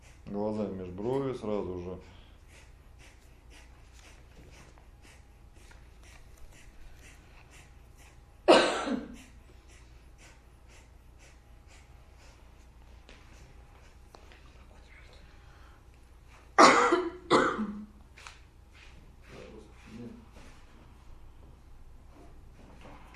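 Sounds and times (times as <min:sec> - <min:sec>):
speech: 0:00.3 - 0:02.2
person coughing: 0:08.5 - 0:09.4, 0:16.6 - 0:17.9.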